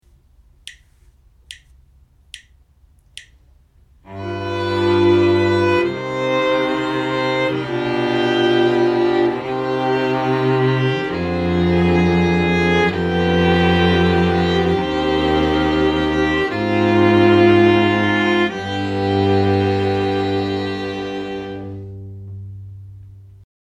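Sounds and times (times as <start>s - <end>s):
string quartet playing: 4.0s - 22.9s.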